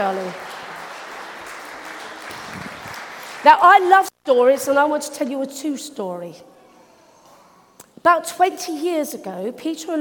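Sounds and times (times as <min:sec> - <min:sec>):
speech: 0:00.0 - 0:00.6, 0:03.4 - 0:06.5, 0:08.0 - 0:09.9
round of applause for a Bible reader: 0:00.0 - 0:04.1.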